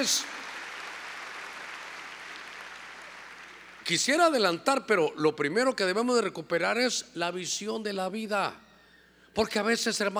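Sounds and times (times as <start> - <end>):
speech: 0.0 - 0.4, 3.9 - 8.6, 9.3 - 10.1
church audience clapping: 0.0 - 3.8.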